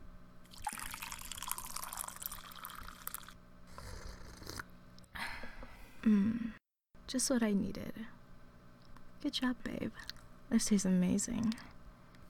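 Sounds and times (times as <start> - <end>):
coffee pouring from a coffee pot: 0.5 - 3.4
speech: 6.1 - 6.4, 7.1 - 8.2, 9.2 - 11.7.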